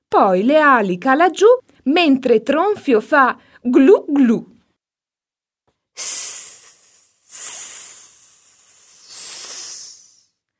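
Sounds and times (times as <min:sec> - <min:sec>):
speech: 0:00.1 - 0:04.5, 0:06.0 - 0:06.3
wind hissing: 0:06.0 - 0:10.3.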